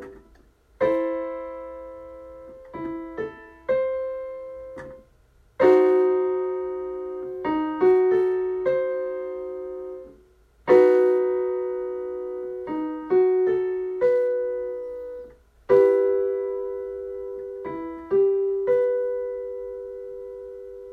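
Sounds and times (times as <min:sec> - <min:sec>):
E minor chords: 0:00.0 - 0:20.9.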